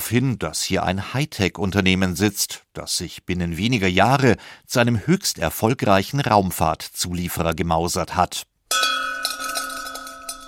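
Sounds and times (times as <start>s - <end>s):
speech: 0.1s - 8.8s
celebration bell being rung: 8.7s - 10.4s.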